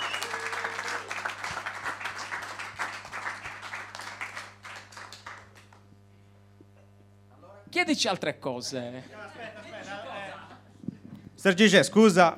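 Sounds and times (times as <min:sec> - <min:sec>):
audience applause: 0:00.0 - 0:05.8
speech: 0:07.8 - 0:09.7, 0:11.4 - 0:12.3
laughter: 0:09.0 - 0:10.7.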